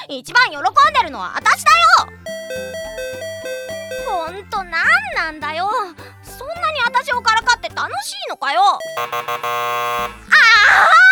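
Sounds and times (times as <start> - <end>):
speech: 0.0 - 3.0, 4.1 - 6.1, 6.8 - 11.0
doorbell chime: 2.3 - 4.4, 8.8 - 10.2.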